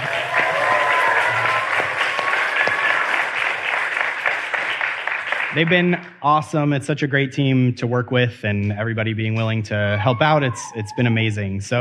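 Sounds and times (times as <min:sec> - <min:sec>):
audience applause: 0:00.0 - 0:06.0
speech: 0:05.5 - 0:11.8.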